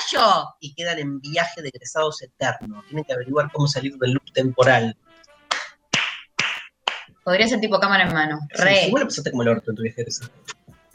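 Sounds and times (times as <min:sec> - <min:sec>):
speech: 0:00.1 - 0:05.0, 0:07.2 - 0:10.6
single hand clap: 0:05.5 - 0:07.1.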